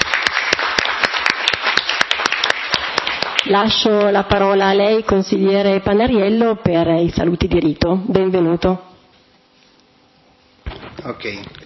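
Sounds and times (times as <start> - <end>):
applause for a newly elected councillor: 0.0 - 4.1
speech: 3.5 - 8.9, 11.2 - 11.6.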